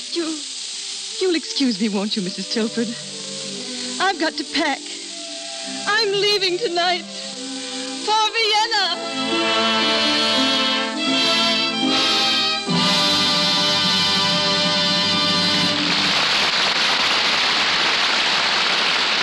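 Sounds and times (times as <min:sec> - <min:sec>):
music: 0:00.0 - 0:16.4
speech: 0:01.2 - 0:03.2, 0:04.0 - 0:04.9, 0:05.7 - 0:07.1, 0:08.0 - 0:10.0
audience applause: 0:13.0 - 0:19.2.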